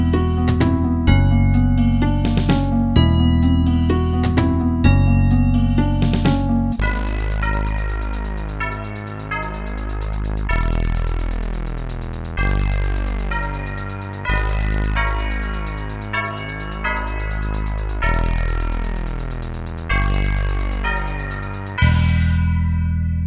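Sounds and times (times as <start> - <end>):
MIDI music in G minor on a synthesizer module: 0.0 - 23.1.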